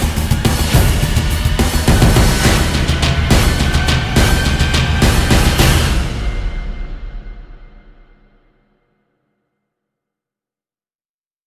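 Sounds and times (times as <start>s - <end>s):
drums: 0.0s - 8.4s.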